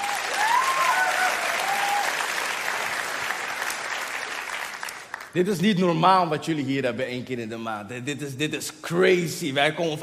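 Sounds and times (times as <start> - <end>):
audience applause: 0.0 - 5.4
speech: 5.4 - 10.0.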